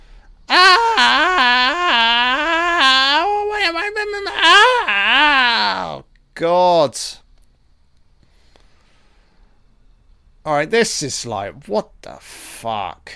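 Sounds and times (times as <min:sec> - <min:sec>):
people screaming in a film: 0:00.5 - 0:06.0
speech: 0:10.6 - 0:13.1.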